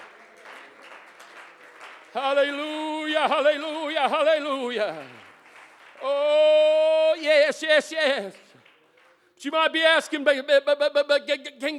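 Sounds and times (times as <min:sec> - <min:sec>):
audience clapping in praise: 0:00.0 - 0:09.4
speech: 0:02.2 - 0:05.3, 0:06.0 - 0:08.4, 0:09.4 - 0:11.7.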